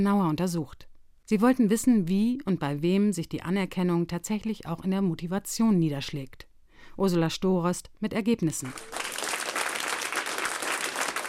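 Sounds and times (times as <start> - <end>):
speech: 0.0 - 9.0
applause for someone standing on stage: 8.6 - 11.2.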